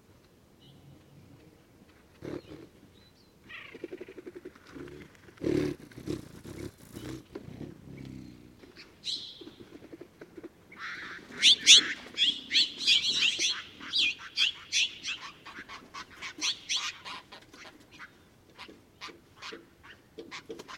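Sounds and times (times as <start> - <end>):
hummingbirds in Madera Canyon: 0.6 - 10.0, 10.7 - 17.4.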